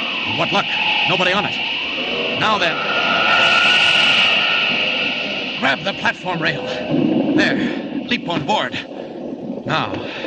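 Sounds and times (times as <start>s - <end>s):
speech: 0.3s - 2.9s, 5.6s - 8.9s, 9.7s - 10.2s
speeding train roar: 0.8s - 8.2s.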